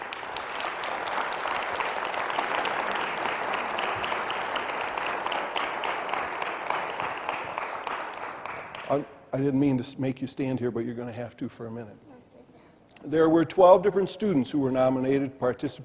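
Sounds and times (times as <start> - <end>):
audience applause welcoming a guest: 0.0 - 9.1
speech: 8.9 - 12.1, 13.0 - 15.8.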